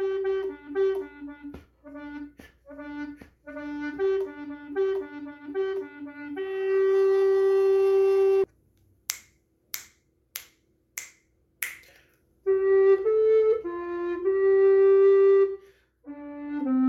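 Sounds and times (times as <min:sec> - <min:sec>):
recorder playing bass parts: 0:00.0 - 0:08.5, 0:12.5 - 0:16.8.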